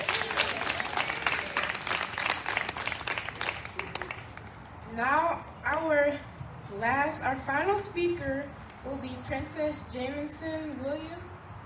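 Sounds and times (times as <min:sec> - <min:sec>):
audience clapping: 0:00.0 - 0:04.5
speech: 0:05.0 - 0:11.2.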